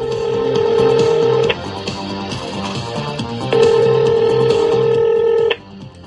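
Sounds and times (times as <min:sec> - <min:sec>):
telephone ringing on a call to a number in the Toronto area: 0:00.0 - 0:01.6, 0:03.6 - 0:05.6.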